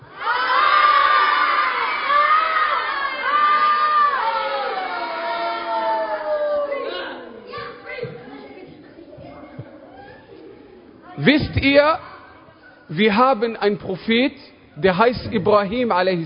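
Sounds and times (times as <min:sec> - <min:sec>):
children shouting loudly on request: 0:00.0 - 0:10.6
speech: 0:11.3 - 0:12.1, 0:12.9 - 0:16.2.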